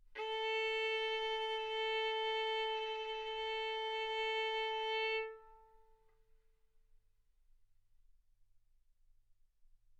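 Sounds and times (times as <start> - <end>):
violin bowed arco notes: 0.1 - 5.9.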